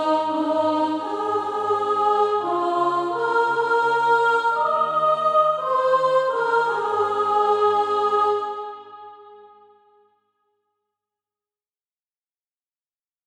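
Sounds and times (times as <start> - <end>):
soprano singing practice music: 0.0 - 9.4.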